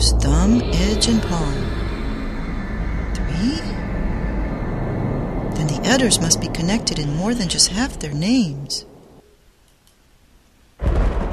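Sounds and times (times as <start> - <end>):
thunder: 0.0 - 8.1, 10.8 - 11.3
speech: 0.2 - 1.9, 3.4 - 3.9, 5.6 - 8.9
rain: 5.6 - 11.3.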